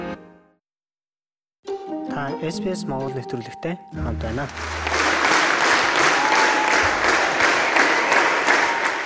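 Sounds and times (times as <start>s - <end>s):
speech: 2.3s - 5.0s
audience at the Sydney Opera House applauding a Mongolian morin khuur ensemble: 4.3s - 9.0s.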